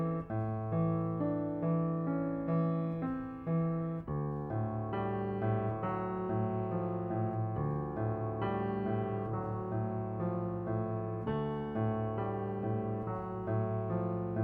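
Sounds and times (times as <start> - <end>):
piano piece: 0.0 - 14.4.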